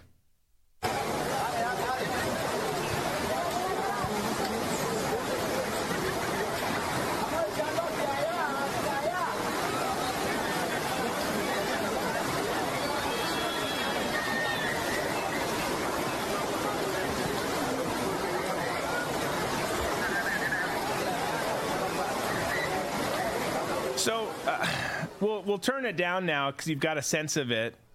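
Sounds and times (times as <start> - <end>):
large crowd of migrants chattering outdoors: 0.8 - 25.4
speech: 25.5 - 27.8.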